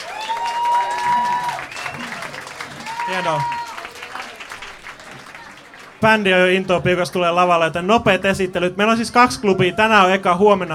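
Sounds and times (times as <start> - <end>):
audience clapping at a jazz club event: 0.0 - 6.8
speech: 3.1 - 3.6, 6.0 - 10.7.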